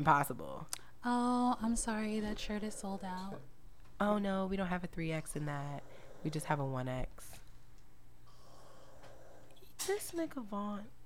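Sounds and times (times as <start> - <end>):
speech: 0.0 - 7.4, 9.8 - 11.0
heavy breathing of sleeping person: 5.6 - 6.5, 8.2 - 9.6.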